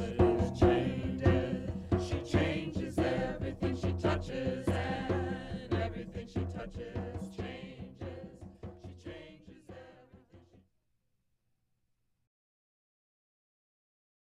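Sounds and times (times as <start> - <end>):
chanting: 0.0 - 10.5.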